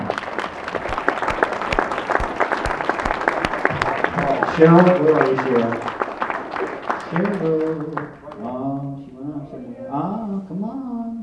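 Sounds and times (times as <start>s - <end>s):
crowd round of applause: 0.0s - 8.6s
speech: 4.6s - 6.0s, 7.1s - 8.9s, 9.5s - 11.0s.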